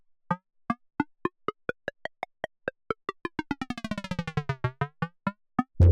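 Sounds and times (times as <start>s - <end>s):
unprocessed synthesizers: 1.0s - 5.7s.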